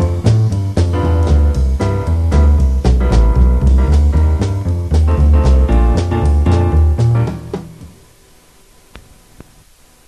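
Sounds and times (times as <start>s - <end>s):
jazz music: 0.0s - 8.0s.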